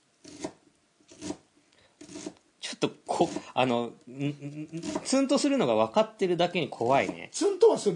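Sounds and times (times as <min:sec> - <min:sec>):
knife mincing an onion: 0:00.2 - 0:01.4, 0:02.0 - 0:02.4, 0:03.1 - 0:03.6, 0:04.8 - 0:05.2, 0:06.9 - 0:07.4
speech: 0:02.8 - 0:07.9.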